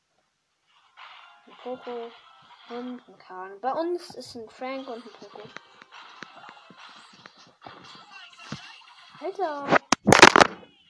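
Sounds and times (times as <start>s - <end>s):
speech: 1.5s - 5.7s, 9.2s - 9.8s
mobile phone falling: 9.7s - 10.6s.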